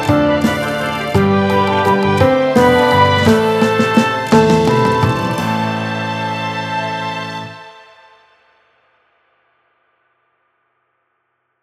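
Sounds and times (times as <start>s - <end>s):
orchestra playing: 0.0s - 7.8s
piano: 0.0s - 8.6s.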